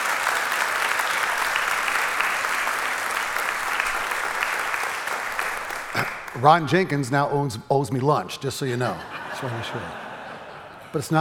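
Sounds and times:
crowd clapping: 0.0 - 7.0
speech: 6.4 - 10.0, 10.9 - 11.2
laughter: 8.7 - 11.2.

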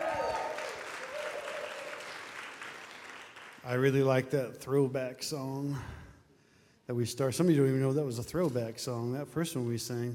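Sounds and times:
church congregation applauding the worship team: 0.0 - 4.0
speech: 3.6 - 6.0, 6.9 - 10.1.

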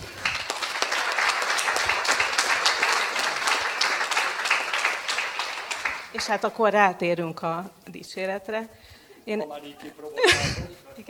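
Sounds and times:
audience applause: 0.0 - 6.4
speech: 6.2 - 11.0
laughter: 10.1 - 10.8.

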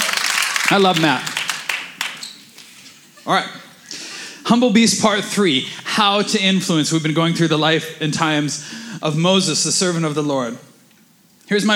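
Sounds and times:
audience applauding: 0.0 - 2.3
speech: 0.7 - 1.3, 3.2 - 3.6, 4.5 - 10.7, 11.5 - 11.7.

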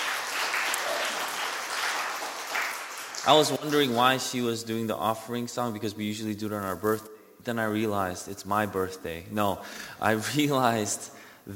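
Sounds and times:
audience applause: 0.0 - 4.0
speech: 3.2 - 11.5.

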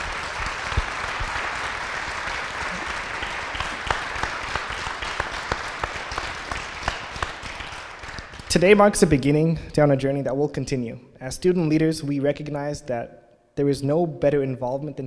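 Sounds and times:
audience applauding: 0.0 - 8.5
speech: 8.6 - 15.0.

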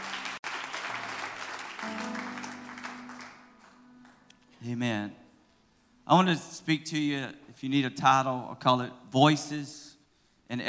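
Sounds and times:
audience clapping: 0.0 - 4.5
speech: 4.6 - 5.2, 6.1 - 9.9, 10.5 - 10.6.

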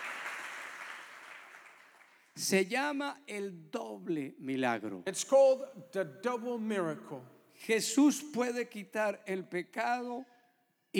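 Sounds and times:
audience applause: 0.0 - 2.3
speech: 2.4 - 10.3.

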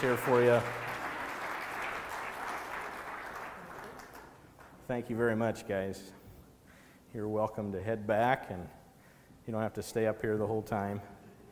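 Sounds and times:
speech: 0.0 - 0.8, 4.9 - 6.2, 7.1 - 8.8, 9.5 - 11.2
audience applause for volunteers: 0.0 - 4.8.

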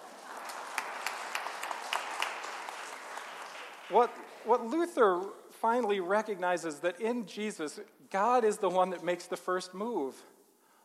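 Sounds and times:
audience applause: 0.0 - 4.6
speech: 3.9 - 10.3.

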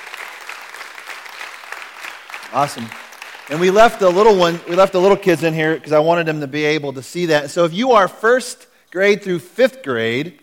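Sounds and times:
round of applause: 0.0 - 5.2
speech: 2.5 - 10.4.

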